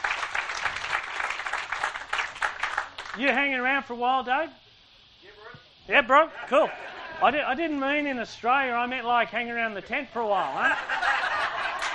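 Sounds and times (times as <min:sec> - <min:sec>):
audience applause: 0:00.0 - 0:03.3, 0:11.0 - 0:11.9
speech: 0:03.2 - 0:04.6, 0:05.9 - 0:11.2
laughter: 0:06.2 - 0:07.6, 0:10.4 - 0:11.9.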